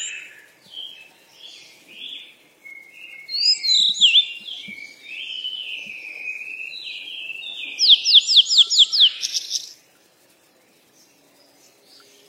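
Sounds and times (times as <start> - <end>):
bird chirping: 0.0 - 12.2.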